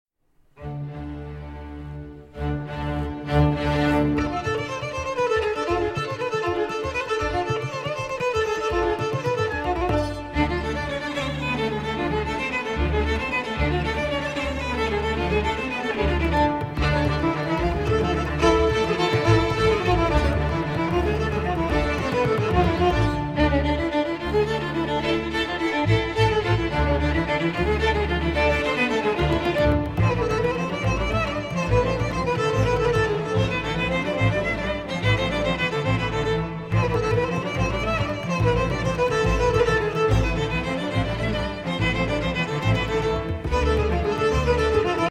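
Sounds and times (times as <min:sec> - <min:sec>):
solo violin: 0:00.4 - 0:45.0.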